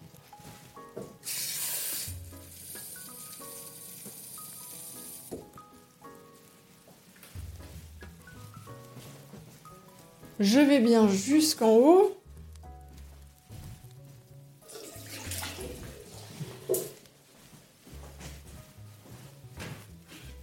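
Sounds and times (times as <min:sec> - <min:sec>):
hot water poured onto 30 g of dried seaweed to rehydrate it: 0:01.2 - 0:05.3, 0:14.6 - 0:17.0
speech: 0:10.4 - 0:12.2.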